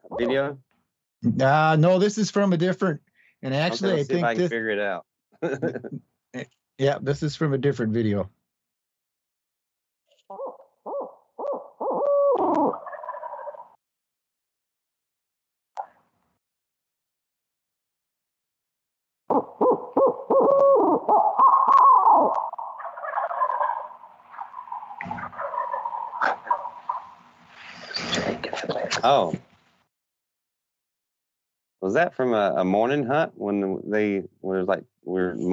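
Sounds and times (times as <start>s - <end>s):
speech: 0.2s - 8.4s, 31.9s - 35.5s
laughter: 3.6s - 4.8s, 5.4s - 6.0s
owl hooting: 10.3s - 13.8s, 19.3s - 29.1s.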